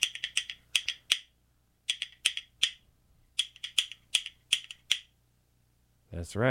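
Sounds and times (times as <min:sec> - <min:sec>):
cow bones clicked together as percussion: 0:00.0 - 0:01.3, 0:01.9 - 0:02.8, 0:03.4 - 0:05.1.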